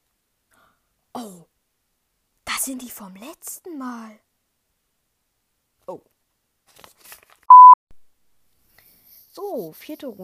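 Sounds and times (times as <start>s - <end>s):
speech: 1.2s - 1.5s, 2.6s - 4.3s, 5.9s - 6.1s, 9.4s - 10.2s
phone message notification beep: 7.5s - 7.8s.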